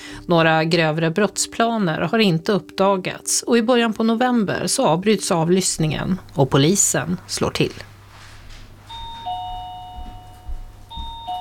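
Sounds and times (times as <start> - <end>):
speech: 0.2 - 7.9
doorbell ringing: 8.8 - 11.3.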